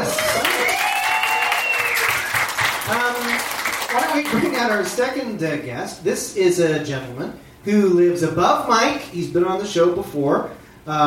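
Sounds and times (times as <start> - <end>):
audience applause: 0.0 - 5.0
whistles and shouts: 0.6 - 2.4
speech: 4.2 - 11.0.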